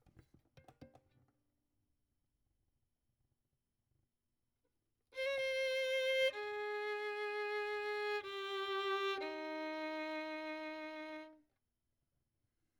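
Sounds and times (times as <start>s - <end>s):
violin: 5.2s - 11.5s.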